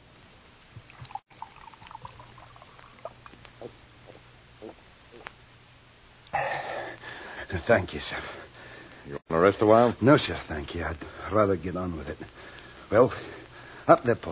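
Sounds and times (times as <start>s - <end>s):
water poured into a glass: 0.9s - 3.4s
speech: 7.7s - 8.4s, 9.4s - 14.2s.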